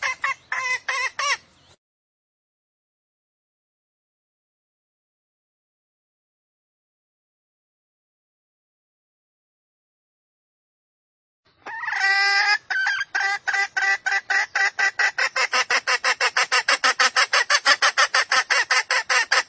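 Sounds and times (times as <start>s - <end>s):
female junglefowl squawking lure call: 0.0s - 1.5s, 11.6s - 19.4s.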